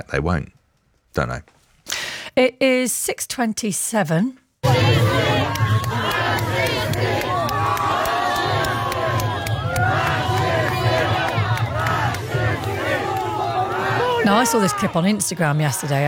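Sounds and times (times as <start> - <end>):
speech: 0.0 - 1.6, 2.4 - 7.4, 14.2 - 16.0
crowd of people chanting: 4.6 - 16.0.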